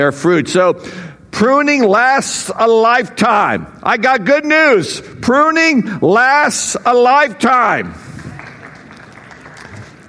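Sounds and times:
speech: 0.0s - 8.0s
audience clapping: 8.0s - 10.0s.

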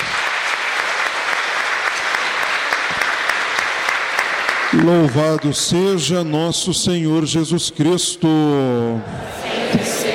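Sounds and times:
applause: 0.0s - 6.1s
speech: 4.7s - 10.1s.

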